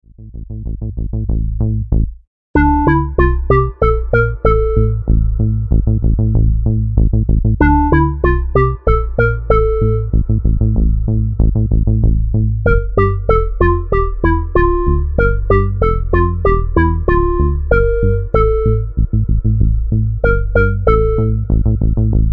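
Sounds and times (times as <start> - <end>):
bass melody: 0.0 - 22.3.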